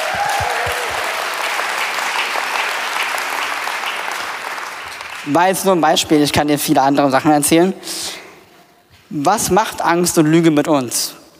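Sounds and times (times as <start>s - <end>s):
audience clapping: 0.0s - 5.8s
speech: 5.2s - 8.2s, 9.1s - 11.2s.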